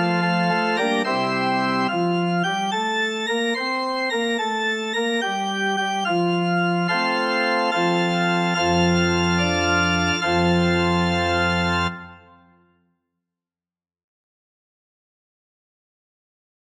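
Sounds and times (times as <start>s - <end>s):
organ playing: 0.0s - 12.7s.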